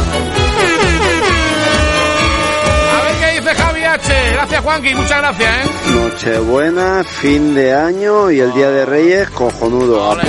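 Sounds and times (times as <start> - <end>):
air horn sound effect blasts: 0.3 - 4.6
speech: 4.0 - 10.2.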